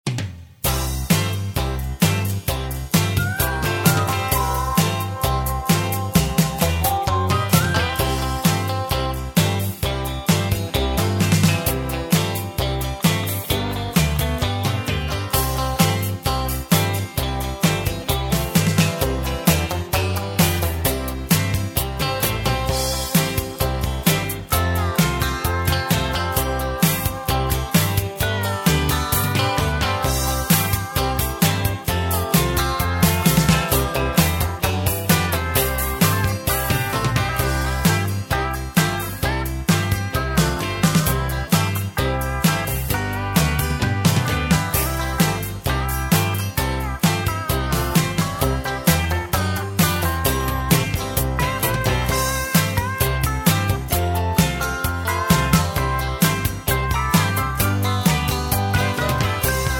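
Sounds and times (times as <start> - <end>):
music: 0.0 - 59.7.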